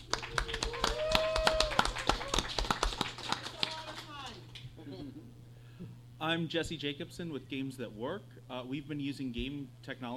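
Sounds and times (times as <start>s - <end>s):
audience applause: 0.0s - 4.4s
speech: 6.3s - 10.1s.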